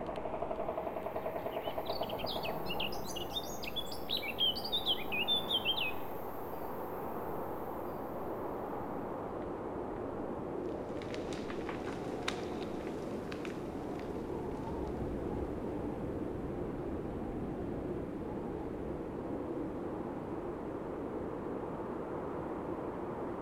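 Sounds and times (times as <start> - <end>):
winter forest ambience: 0.0 - 23.4.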